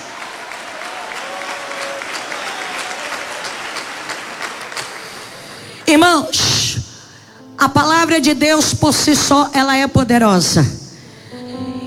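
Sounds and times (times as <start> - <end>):
crowd applause: 0.0 - 6.4
speech: 5.9 - 6.6, 7.6 - 10.8.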